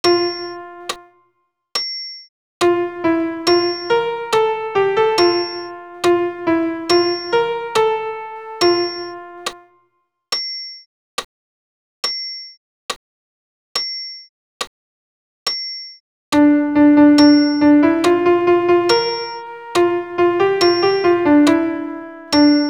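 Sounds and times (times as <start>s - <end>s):
solo piano piece: 0.0s - 1.1s, 2.6s - 9.7s, 16.4s - 22.6s.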